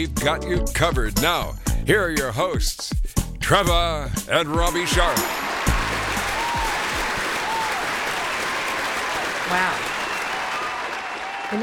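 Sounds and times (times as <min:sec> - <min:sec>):
speech: 0:00.0 - 0:05.4, 0:09.5 - 0:09.9
audience applause: 0:04.6 - 0:11.6.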